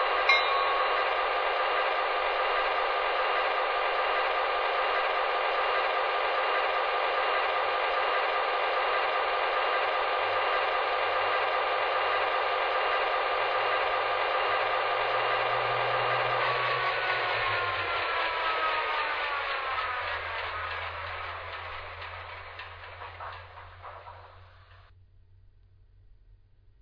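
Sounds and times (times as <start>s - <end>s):
trains: 0.0s - 24.9s.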